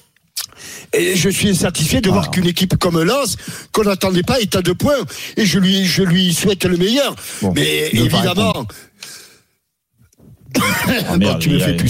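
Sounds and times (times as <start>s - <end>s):
speech: 0.9s - 8.9s, 10.6s - 11.8s
man coughing and clearing his throat: 10.5s - 11.2s.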